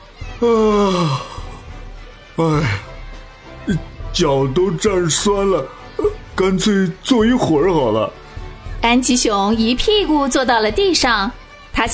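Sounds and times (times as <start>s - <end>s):
speech: 0.4s - 1.4s, 2.4s - 2.9s, 3.7s - 8.2s, 8.8s - 11.9s
person acting out a big yawn: 0.4s - 1.6s.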